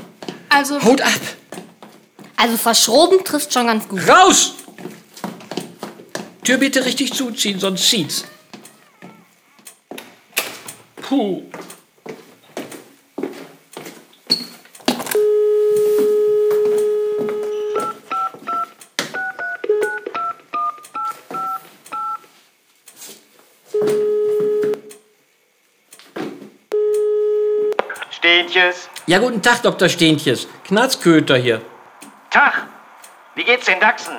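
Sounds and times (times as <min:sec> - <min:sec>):
speech: 0:00.6 - 0:01.4, 0:02.4 - 0:04.6, 0:06.4 - 0:08.4, 0:11.1 - 0:11.6, 0:28.5 - 0:31.7, 0:33.4 - 0:34.1
beeping touch-tone digits as a call is placed to a doctor: 0:15.2 - 0:22.2, 0:23.8 - 0:24.8, 0:26.7 - 0:34.1
long electronic phone ringback tones: 0:15.2 - 0:22.2, 0:23.8 - 0:24.9, 0:26.7 - 0:30.6
steady telephone dial tone: 0:15.2 - 0:22.2, 0:23.8 - 0:24.9, 0:26.8 - 0:27.8.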